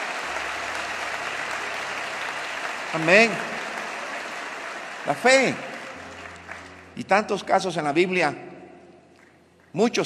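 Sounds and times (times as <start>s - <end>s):
audience applause: 0.0s - 7.1s
speech: 2.9s - 3.6s, 5.0s - 5.7s, 7.0s - 8.5s, 9.8s - 10.0s.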